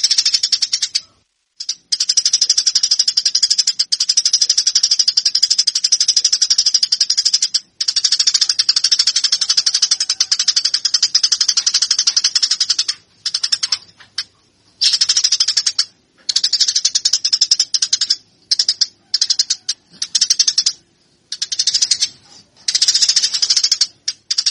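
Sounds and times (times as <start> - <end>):
Eurasian tree sparrow chirping: 0.0 - 24.4.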